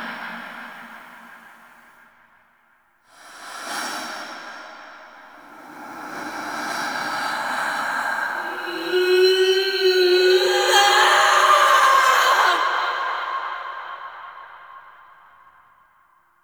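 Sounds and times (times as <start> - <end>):
person singing: 5.8 - 14.8.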